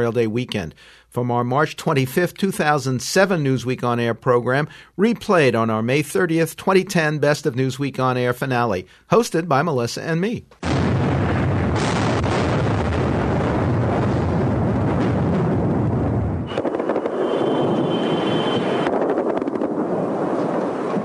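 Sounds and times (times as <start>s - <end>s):
speech: 0.0s - 10.9s
explosions from the shock and awe bombing of Baghdad: 10.6s - 21.0s.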